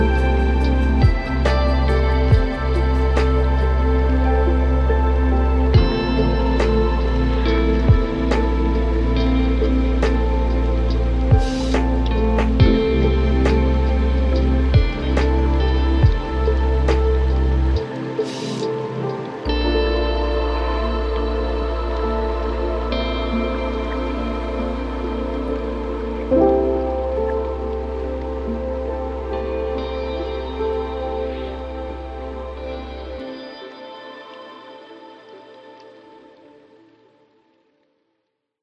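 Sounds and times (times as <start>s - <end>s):
deep ocean lo-fi ambient music: 0.0s - 37.9s.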